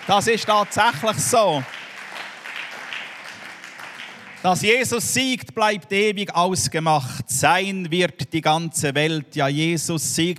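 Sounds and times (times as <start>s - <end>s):
audience applause: 0.0s - 5.0s
speech: 0.1s - 1.8s, 4.4s - 10.3s.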